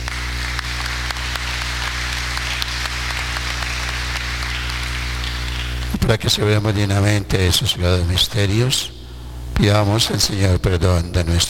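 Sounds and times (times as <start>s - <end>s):
audience applause: 0.0s - 6.2s
speech: 6.1s - 9.0s, 9.6s - 11.4s.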